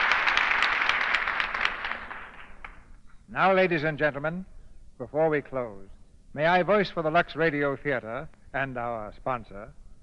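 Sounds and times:
audience applause: 0:00.0 - 0:02.8
speech: 0:03.4 - 0:09.8.

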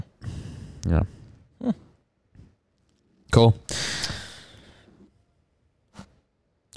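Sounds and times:
deep breath: 0:00.2 - 0:01.4, 0:03.7 - 0:05.1
speech: 0:00.9 - 0:01.9, 0:03.3 - 0:03.9.

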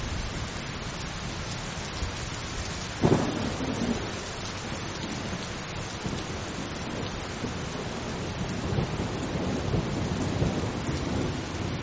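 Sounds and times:
dense rain in a thunderstorm: 0:00.0 - 0:11.8
thunder crack: 0:03.0 - 0:04.1, 0:08.1 - 0:11.7
thunder roll: 0:03.0 - 0:04.2, 0:06.0 - 0:11.8.

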